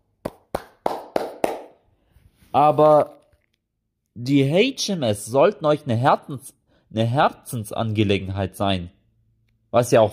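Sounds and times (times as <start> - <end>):
clapping: 0.2 - 1.8
speech: 2.5 - 3.2, 4.2 - 9.0, 9.7 - 10.1.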